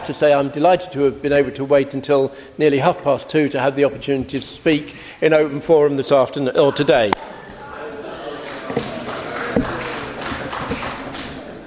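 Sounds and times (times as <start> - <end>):
speech: 0.0 - 7.4
applause in council chamber: 8.4 - 11.6.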